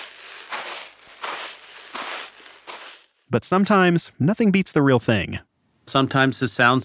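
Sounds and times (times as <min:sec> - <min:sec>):
footsteps in a sand pit mimicking snow: 0:00.0 - 0:03.3
speech: 0:03.3 - 0:06.8.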